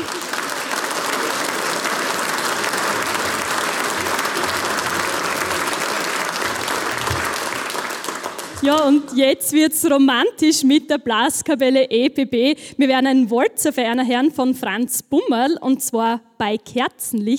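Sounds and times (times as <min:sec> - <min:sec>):
audience applause: 0:00.0 - 0:09.2
speech: 0:08.6 - 0:17.3.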